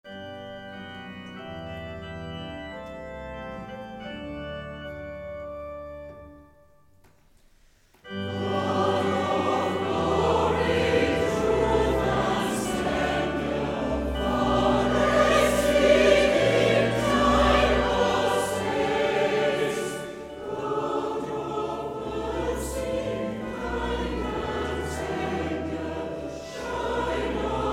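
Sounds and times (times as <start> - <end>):
choir singing hymns: 8.1 - 27.7.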